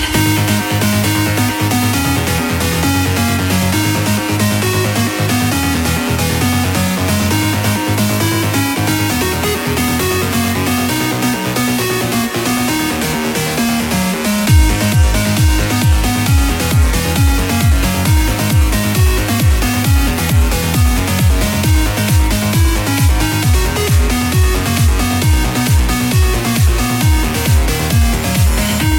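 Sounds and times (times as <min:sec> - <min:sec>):
trance music: 0:00.0 - 0:28.9.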